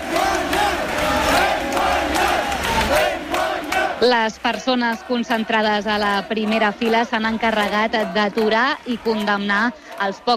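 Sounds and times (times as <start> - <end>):
protesters cheering in celebration: 0.0 - 10.3
speech: 4.0 - 10.3.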